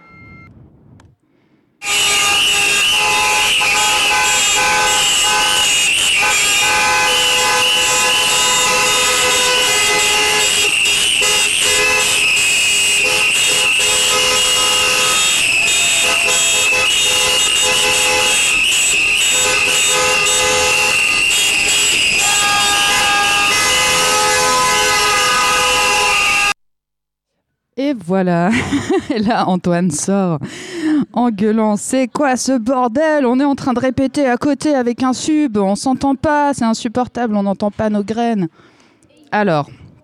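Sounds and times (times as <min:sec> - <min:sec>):
car horns honking in protest: 0:01.8 - 0:26.6
speech: 0:28.2 - 0:38.7, 0:39.3 - 0:39.8.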